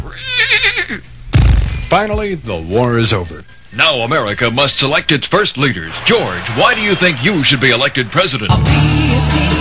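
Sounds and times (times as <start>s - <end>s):
horse neighing, voiced as Paul Revere's horse: 0.2s - 1.0s
speech: 1.9s - 9.5s.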